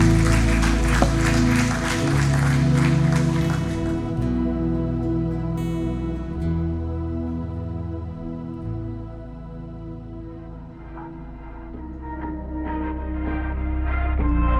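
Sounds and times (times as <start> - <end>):
church crowd applauding in a large room: 0.0 - 4.8
sustained music: 0.0 - 14.5.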